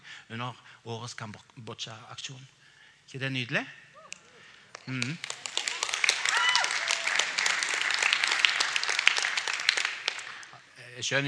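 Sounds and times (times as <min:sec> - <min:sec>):
speech: 0:00.3 - 0:03.8, 0:04.8 - 0:05.4, 0:11.0 - 0:11.2
gentle audience clapping: 0:04.2 - 0:10.6.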